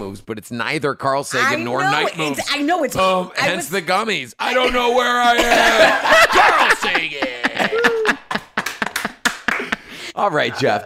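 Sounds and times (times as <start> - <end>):
speech: 0.1 - 7.3, 10.2 - 10.8
laughter: 4.6 - 10.1
one person clapping: 8.4 - 9.8.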